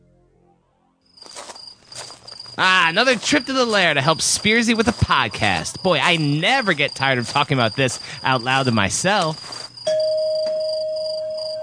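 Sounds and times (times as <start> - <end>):
speech: 2.6 - 9.6
electronic doorbell chime: 9.9 - 11.6.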